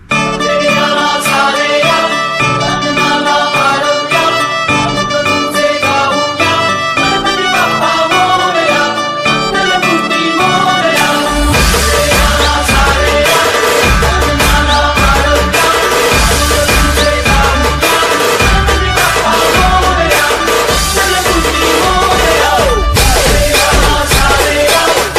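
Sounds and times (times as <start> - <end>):
devotional chant ringtone: 0.0 - 25.0.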